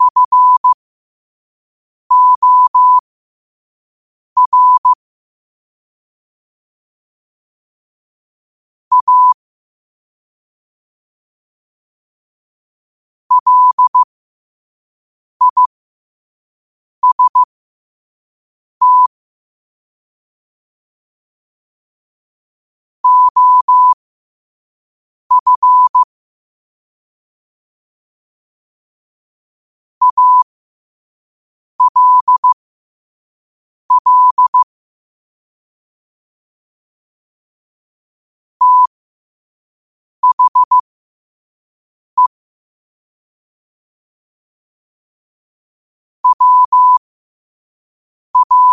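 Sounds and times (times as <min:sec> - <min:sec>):
morse code at 5 wpm: 0:00.0 - 0:00.8, 0:02.1 - 0:03.0, 0:04.4 - 0:05.0, 0:08.9 - 0:09.4, 0:13.3 - 0:14.1, 0:15.4 - 0:15.7, 0:17.0 - 0:17.5, 0:18.8 - 0:19.1, 0:23.0 - 0:24.0, 0:25.3 - 0:26.1, 0:30.0 - 0:30.4, 0:31.8 - 0:32.6, 0:33.9 - 0:34.7, 0:38.6 - 0:38.9, 0:40.2 - 0:40.8, 0:46.2 - 0:47.0, 0:48.4 - 0:48.7.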